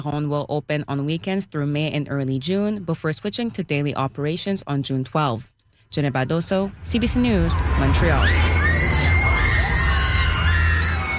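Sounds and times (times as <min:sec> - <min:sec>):
speech: 0:00.0 - 0:08.6
crowds screaming and shouting at La Ronde amusement park in Montreal: 0:06.8 - 0:11.1.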